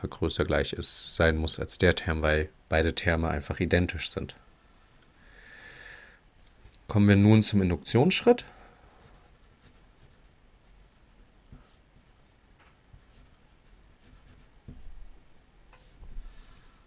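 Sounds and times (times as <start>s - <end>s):
speech: 0.0s - 4.4s, 6.9s - 8.6s
hand writing out an induction proof: 9.0s - 11.8s, 13.0s - 14.8s.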